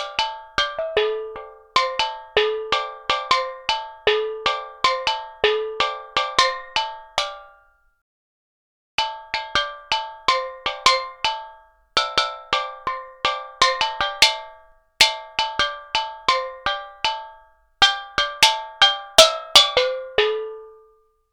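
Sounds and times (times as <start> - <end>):
steel drum: 0.0 - 7.6, 9.0 - 20.9.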